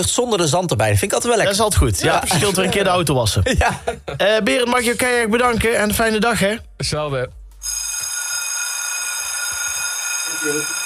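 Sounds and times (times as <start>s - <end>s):
speech: 0.0s - 7.8s, 10.4s - 10.8s
laughter: 2.0s - 4.3s
school bell ringing: 7.6s - 10.8s.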